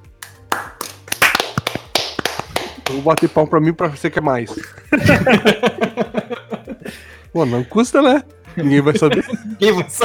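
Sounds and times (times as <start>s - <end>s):
applause: 0.2s - 3.3s
speech: 2.9s - 6.1s, 7.4s - 10.0s
laughter: 4.5s - 7.1s, 8.5s - 10.0s.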